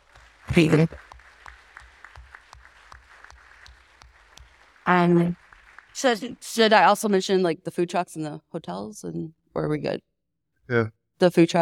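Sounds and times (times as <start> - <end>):
audience applause: 0.0 - 6.7
speech: 0.5 - 1.1, 5.0 - 5.4, 6.0 - 10.1, 10.7 - 11.6.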